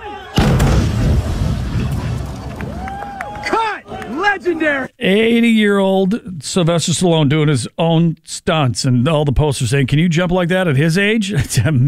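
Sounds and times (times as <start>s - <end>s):
movie stunt explosion: 0.4s - 3.1s
speech: 4.4s - 11.8s.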